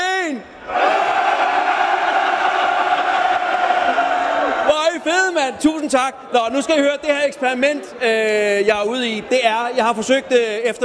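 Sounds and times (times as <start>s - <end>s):
festival crowd roaring at Næstved Metalfest: 0.6s - 4.7s
speech: 5.5s - 10.8s.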